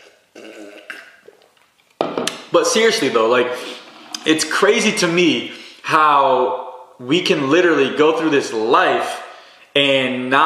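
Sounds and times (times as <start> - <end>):
mouth clicks: 0.0 - 1.6
person sipping water: 0.0 - 1.8, 3.6 - 4.3
speech: 2.5 - 9.2, 9.8 - 10.4.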